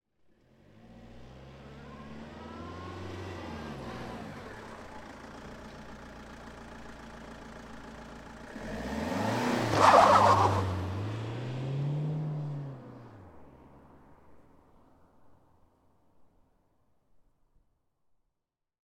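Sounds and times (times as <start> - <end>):
Fiat Multipla car reversing with wheel spin on a road: 1.0 - 13.1.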